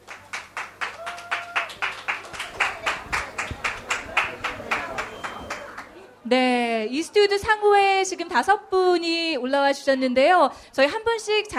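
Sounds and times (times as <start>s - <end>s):
audience applause: 0.0s - 6.0s
speech: 6.3s - 11.5s.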